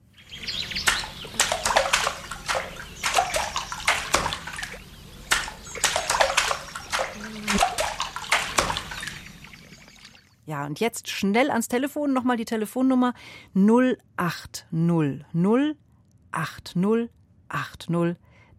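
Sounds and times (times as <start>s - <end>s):
rhythm beaten with a paddle in water: 0.3s - 10.3s
speech: 10.6s - 18.2s.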